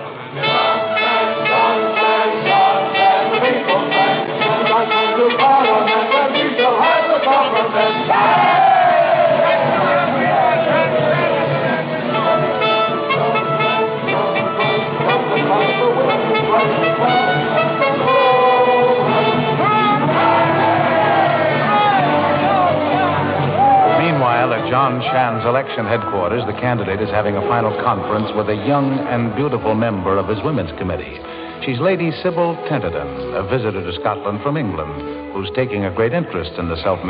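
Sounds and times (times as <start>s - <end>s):
band music: 0.0s - 37.0s
election crowd cheering and shouting: 6.7s - 29.6s
speech: 24.9s - 37.0s.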